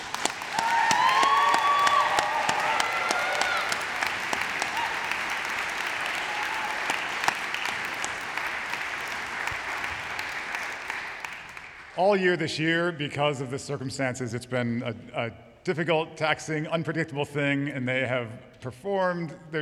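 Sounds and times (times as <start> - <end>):
audience applause: 0.0 - 12.0
speech: 12.0 - 19.5.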